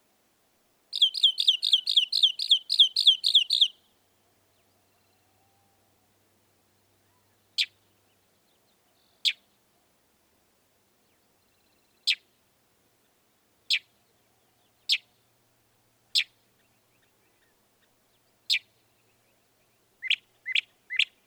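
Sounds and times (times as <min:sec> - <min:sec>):
faint hiss: 0:00.0 - 0:21.2
northern mockingbird singing: 0:01.0 - 0:03.8.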